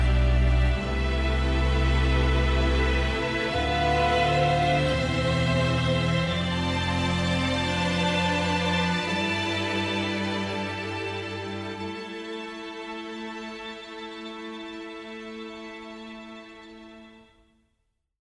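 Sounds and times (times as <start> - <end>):
piano: 0.0 - 13.1
string instruments: 0.0 - 17.6.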